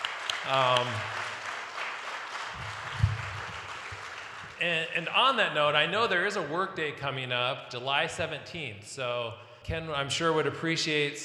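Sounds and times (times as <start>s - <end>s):
crowd applause: 0.0s - 4.8s
speech: 0.4s - 1.2s, 4.6s - 11.2s
low voice murmuring: 0.5s - 1.0s.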